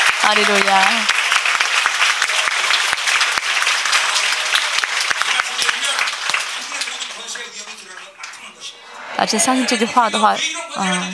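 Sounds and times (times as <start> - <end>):
crowd applauding: 0.0 - 8.7
speech: 0.3 - 1.2, 9.2 - 11.1.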